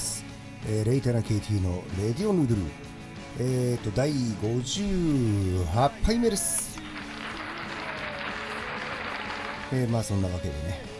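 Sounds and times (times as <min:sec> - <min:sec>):
speech: 0:00.6 - 0:06.6, 0:09.7 - 0:10.9
inserted applause sound effect: 0:06.2 - 0:10.4.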